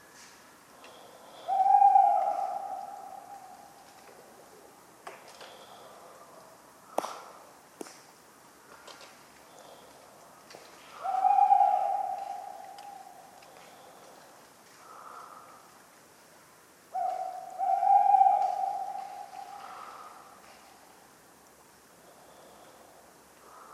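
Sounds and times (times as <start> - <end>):
tawny owl hooting: 0.9 - 3.9, 10.9 - 14.0, 16.9 - 20.4.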